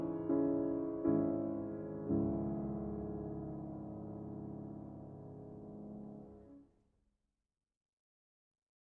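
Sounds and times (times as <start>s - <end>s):
solo piano: 0.0s - 6.6s.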